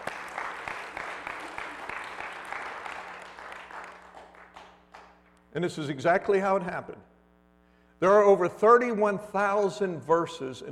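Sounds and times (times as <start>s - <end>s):
audience clapping hands: 0.0s - 5.3s
speech: 5.6s - 7.1s, 8.0s - 10.7s.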